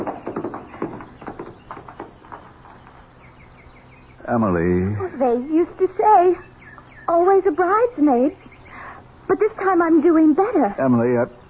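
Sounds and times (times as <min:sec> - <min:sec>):
hooves of a horse ridden away at a trot: 0:00.0 - 0:03.5
speech: 0:04.3 - 0:06.5, 0:07.1 - 0:08.4, 0:09.3 - 0:11.4.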